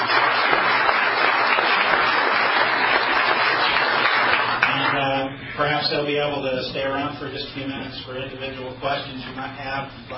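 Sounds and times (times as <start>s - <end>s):
audience round of applause: 0.0s - 5.0s
speech: 5.9s - 10.1s.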